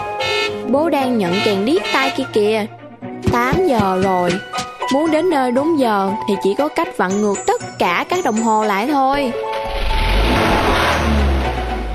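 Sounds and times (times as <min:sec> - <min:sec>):
speech: 0:00.7 - 0:09.5
car engine accelerating hard as it speeds out through a gate: 0:09.6 - 0:11.9.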